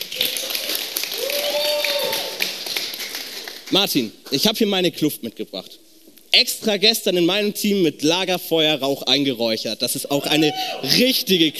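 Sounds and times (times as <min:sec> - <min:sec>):
audience applause: 0:00.0 - 0:03.9
speech: 0:03.7 - 0:11.5.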